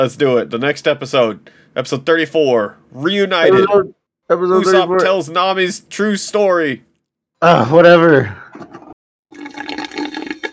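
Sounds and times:
speech: 0:00.0 - 0:09.6
person slurping a drink on mic: 0:08.5 - 0:10.5.

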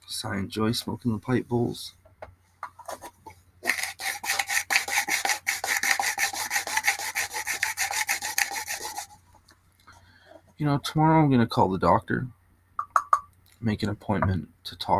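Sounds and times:
speech: 0:00.1 - 0:02.0, 0:10.6 - 0:12.4, 0:13.6 - 0:14.9
dried lavender being ground for smoking: 0:02.9 - 0:09.2.

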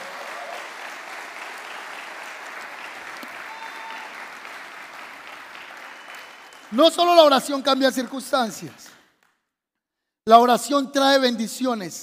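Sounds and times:
audience applause: 0:00.0 - 0:07.3
speech: 0:06.7 - 0:09.0, 0:10.3 - 0:12.0.

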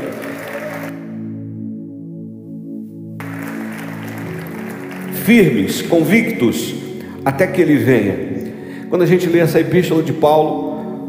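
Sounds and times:
audience clapping: 0:00.0 - 0:01.0, 0:03.2 - 0:07.0
sustained keyboard chords: 0:00.0 - 0:11.0
speech: 0:05.3 - 0:10.6.

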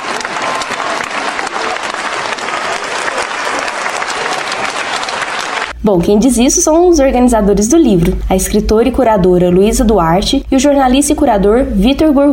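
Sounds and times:
loud round of applause from a crowd: 0:00.0 - 0:05.8
speech: 0:05.8 - 0:12.3.

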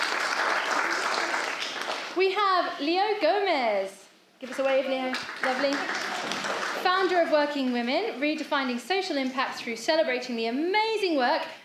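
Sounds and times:
audience round of applause: 0:00.0 - 0:02.2, 0:04.6 - 0:07.0
speech: 0:02.2 - 0:11.6.

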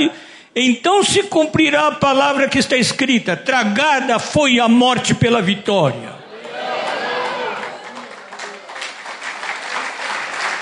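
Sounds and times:
speech: 0:00.0 - 0:06.2
people cheering: 0:06.2 - 0:10.5
audience applause: 0:06.4 - 0:10.5.

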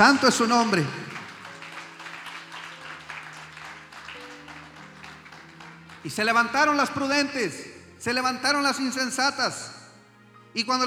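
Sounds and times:
speech: 0:00.0 - 0:01.2, 0:06.0 - 0:09.8, 0:10.5 - 0:10.8
audience applauding: 0:00.0 - 0:07.5.

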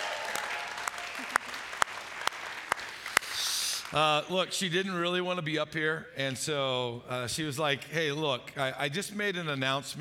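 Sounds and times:
audience applause at a welcome on a church's Kearney campus: 0:00.0 - 0:04.2
speech: 0:03.9 - 0:09.9.

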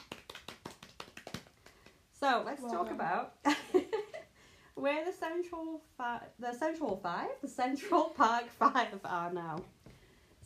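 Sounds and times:
hand clapping: 0:00.0 - 0:02.1
speech: 0:02.2 - 0:04.0, 0:04.8 - 0:09.8.

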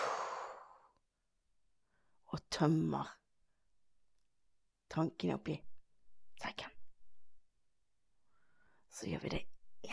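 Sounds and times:
slow exhale during breathing exercise: 0:00.0 - 0:00.9
speech: 0:02.3 - 0:03.2, 0:04.9 - 0:05.7, 0:06.4 - 0:06.7, 0:08.9 - 0:09.9.

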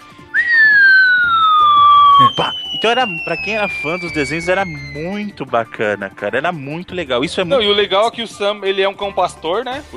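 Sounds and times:
voice whistling imitation of a cartoon falling whistle: 0:00.3 - 0:05.3
speech: 0:02.4 - 0:09.9.

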